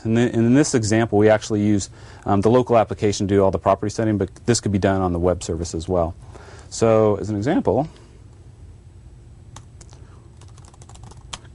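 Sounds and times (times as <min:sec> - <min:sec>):
speech: 0:00.0 - 0:08.0
typing on a computer keyboard: 0:10.4 - 0:11.5.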